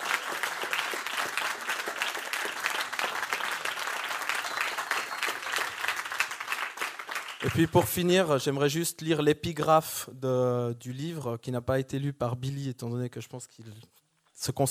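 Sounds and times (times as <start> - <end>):
group of students applauding: 0.0 - 8.0
speech: 7.4 - 14.7.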